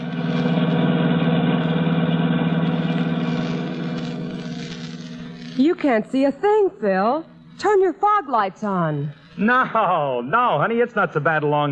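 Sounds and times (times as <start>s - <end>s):
car engine hum driving along the San Bernardino Valley road: 0.0s - 5.8s
speech: 5.7s - 11.7s.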